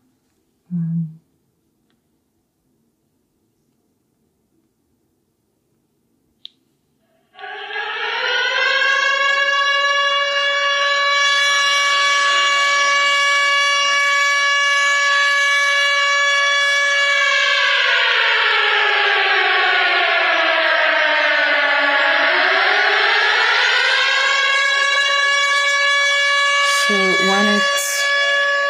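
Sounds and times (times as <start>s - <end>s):
air raid alarm alert siren wailing on a phone: 7.1s - 28.6s.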